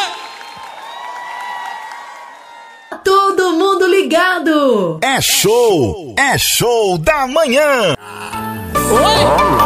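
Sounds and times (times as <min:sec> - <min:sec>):
crowd clapping: 0:00.0 - 0:02.9
speech: 0:02.9 - 0:08.1, 0:08.9 - 0:09.6.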